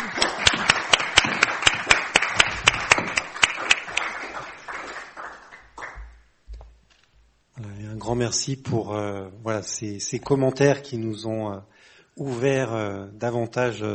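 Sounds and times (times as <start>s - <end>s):
group applause: 0.0s - 6.3s
speech: 8.1s - 13.9s.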